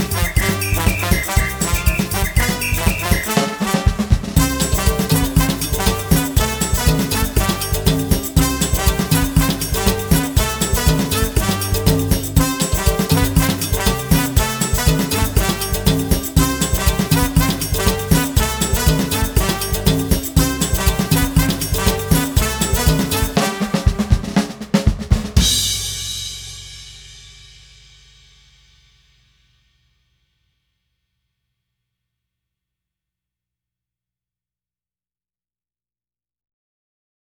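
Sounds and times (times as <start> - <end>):
instrumental backing track: 0.0 - 25.8.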